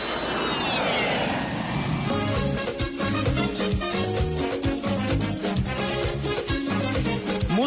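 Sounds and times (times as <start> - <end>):
jet airplane taking off with high whine: 0.0 - 7.5
lively music with a steady driving beat: 2.1 - 7.6.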